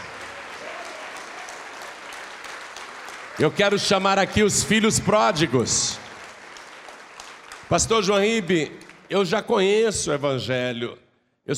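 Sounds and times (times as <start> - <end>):
audience clapping: 0.0 - 9.7
speech: 3.4 - 6.1, 7.7 - 11.5.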